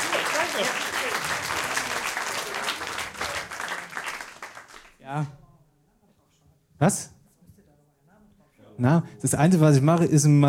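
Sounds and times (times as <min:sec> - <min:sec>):
audience applause: 0:00.0 - 0:05.0
speech: 0:05.1 - 0:05.4, 0:06.8 - 0:07.2, 0:08.8 - 0:10.4.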